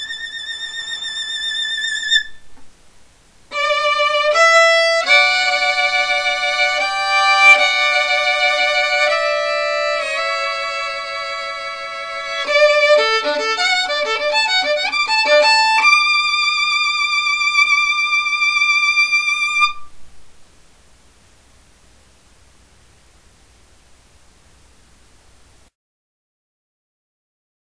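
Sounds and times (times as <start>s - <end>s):
violin solo: 0.0s - 2.6s, 3.5s - 19.9s.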